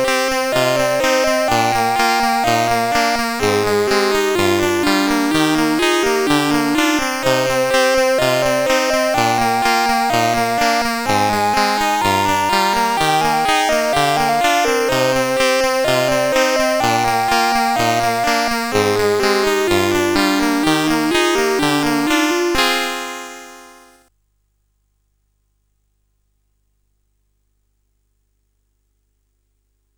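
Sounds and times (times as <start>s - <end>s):
concerto music: 0.0s - 23.1s.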